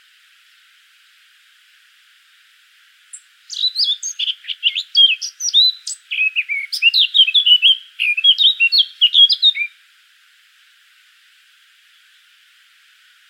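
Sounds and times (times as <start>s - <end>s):
Eurasian blackcap warbling: 3.1s - 9.7s.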